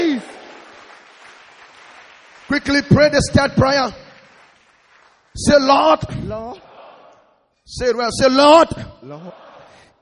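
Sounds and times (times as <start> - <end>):
audience clapping: 0.0 - 7.3
speech: 2.5 - 4.1, 5.4 - 6.7, 7.7 - 9.4.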